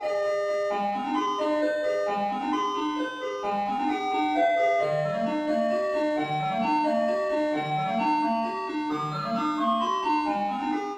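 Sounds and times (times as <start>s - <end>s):
ice cream truck: 0.0s - 10.9s.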